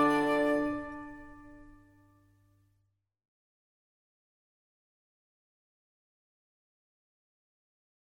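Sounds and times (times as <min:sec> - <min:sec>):
Japanese Christmas song: 0:00.0 - 0:01.8.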